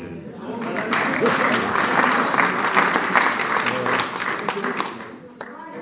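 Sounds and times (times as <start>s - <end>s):
audience applause: 0.4s - 5.5s.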